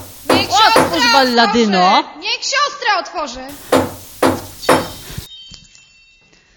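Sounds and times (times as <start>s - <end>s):
heavy knocks on a wooden cottage door: 0.0s - 1.3s, 3.5s - 5.3s
speech: 0.9s - 4.0s.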